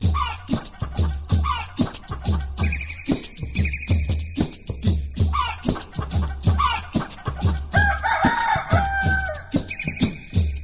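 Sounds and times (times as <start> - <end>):
alarm beat: 0.0 - 10.6.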